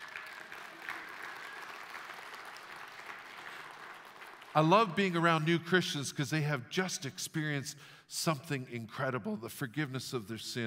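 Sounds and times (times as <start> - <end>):
audience applauding: 0.0 - 5.0
speech: 4.6 - 10.6.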